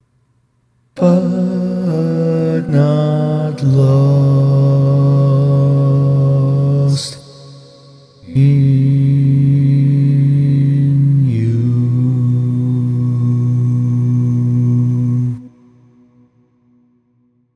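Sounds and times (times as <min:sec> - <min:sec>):
baritone barbershop tags: 0:01.0 - 0:07.4, 0:08.2 - 0:15.5.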